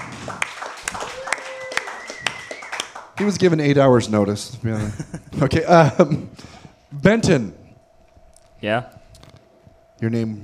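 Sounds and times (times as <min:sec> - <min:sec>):
audience clapping at a comedy show: 0:00.0 - 0:03.8
speech: 0:03.2 - 0:07.6, 0:08.6 - 0:09.0, 0:10.0 - 0:10.4
laughter: 0:04.6 - 0:06.4.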